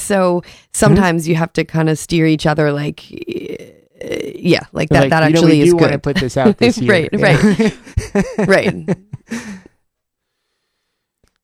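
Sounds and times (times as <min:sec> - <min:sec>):
speech: 0:00.1 - 0:09.6
laughter: 0:05.9 - 0:09.6
sharp inhale before speaking: 0:09.3 - 0:11.1.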